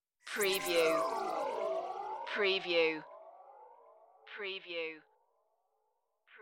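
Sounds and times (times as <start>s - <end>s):
creepy high tone: 0.3s - 4.5s.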